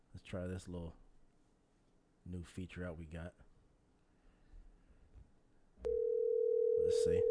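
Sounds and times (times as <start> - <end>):
speech: 0.2 - 1.0, 2.3 - 3.5, 7.1 - 7.2
phone line tone as a call is placed: 5.8 - 7.2.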